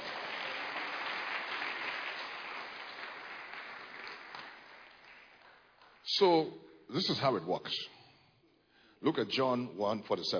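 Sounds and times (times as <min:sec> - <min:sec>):
church congregation clapping hands: 0:00.0 - 0:06.2
speech: 0:06.1 - 0:08.0, 0:09.0 - 0:10.3.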